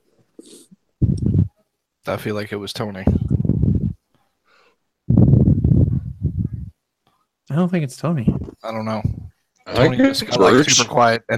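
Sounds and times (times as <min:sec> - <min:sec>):
speech: 0:02.1 - 0:03.3, 0:07.6 - 0:11.3
someone breathing into a microphone: 0:03.1 - 0:06.7.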